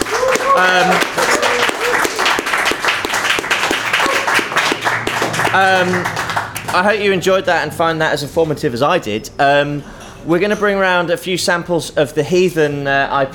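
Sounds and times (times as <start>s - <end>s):
audience round of applause: 0.0s - 6.8s
speech: 0.6s - 1.1s, 5.5s - 13.3s.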